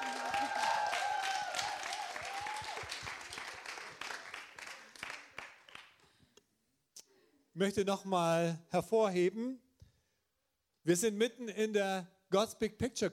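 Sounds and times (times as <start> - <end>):
audience applause at a church conference: 0.0 - 6.0
speech: 7.6 - 9.6, 10.8 - 13.1.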